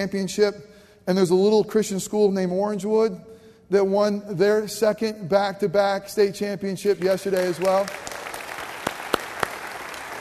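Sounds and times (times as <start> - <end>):
speech: 0.0 - 8.3
hand claps: 6.8 - 10.1.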